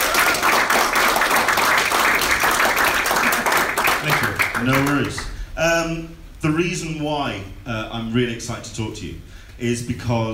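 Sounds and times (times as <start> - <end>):
audience round of applause: 0.0 - 5.3
speech: 4.6 - 10.3.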